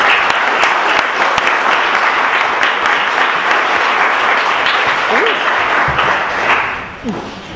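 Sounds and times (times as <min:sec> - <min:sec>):
audience applause: 0:00.0 - 0:07.3.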